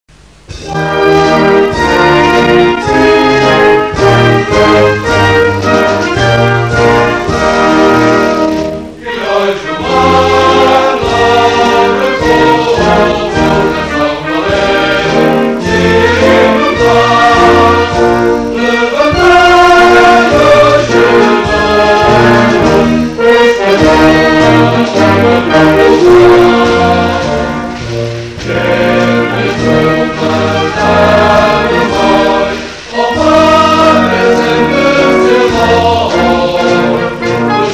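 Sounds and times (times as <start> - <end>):
national anthem sung: 0.1 - 37.7.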